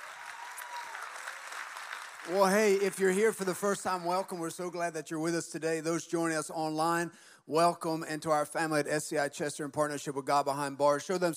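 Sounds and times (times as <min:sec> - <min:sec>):
audience clapping: 0:00.0 - 0:04.3
speech: 0:02.2 - 0:11.3.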